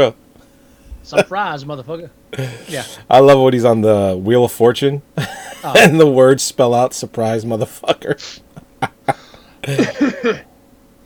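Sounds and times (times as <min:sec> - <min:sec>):
speech: 0:00.0 - 0:00.2, 0:01.0 - 0:08.5, 0:09.1 - 0:10.5
laughter: 0:02.4 - 0:03.0, 0:05.2 - 0:06.2, 0:07.6 - 0:10.4
throat clearing: 0:02.4 - 0:03.0.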